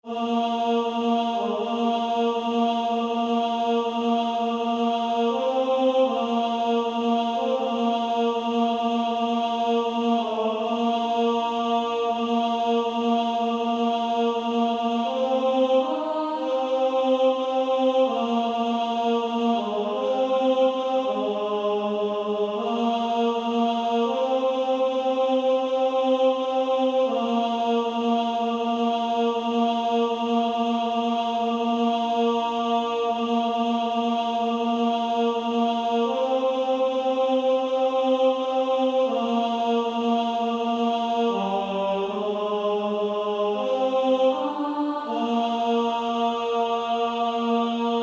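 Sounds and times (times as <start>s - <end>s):
female choir alto part singing: 0.0s - 48.0s.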